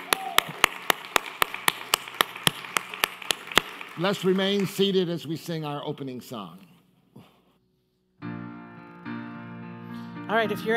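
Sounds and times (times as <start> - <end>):
audience applauding: 0.0 - 5.1
speech: 4.0 - 6.7, 10.3 - 10.7.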